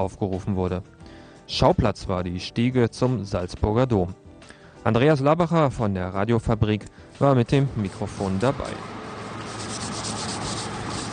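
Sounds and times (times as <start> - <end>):
speech: 0.0 - 4.2, 4.8 - 8.9
brushes scrubbing stone steps of the cathedral entrance: 7.9 - 11.1.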